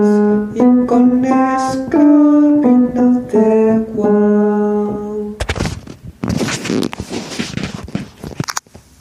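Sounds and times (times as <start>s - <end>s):
tenor singing a zorongo: 0.0s - 5.4s.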